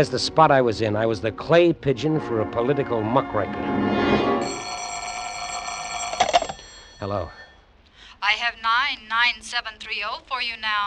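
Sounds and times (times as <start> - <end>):
speech: 0.0 - 4.7, 7.0 - 7.4, 8.2 - 10.8
telephone bell ringing: 4.4 - 7.7.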